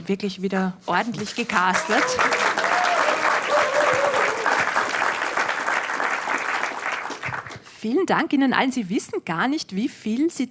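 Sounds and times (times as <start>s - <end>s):
speech: 0.0s - 2.5s, 7.8s - 10.4s
crowd applauding: 1.7s - 7.6s
faint cheering voices: 2.0s - 4.8s.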